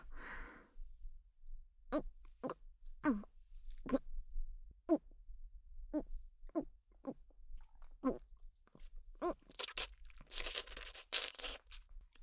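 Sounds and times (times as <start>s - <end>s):
speech: 1.9s - 4.0s
swallowing and mouth sounds while drinking water during an ASMR stream: 5.9s - 12.1s.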